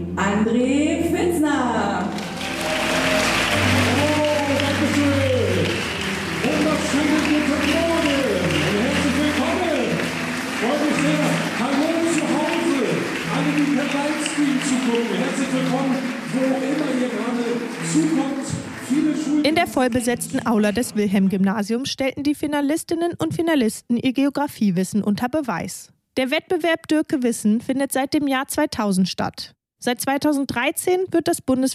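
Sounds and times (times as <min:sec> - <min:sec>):
speech: 0:00.0 - 0:00.9, 0:14.9 - 0:31.7
loud applause in a large hall: 0:02.1 - 0:20.4.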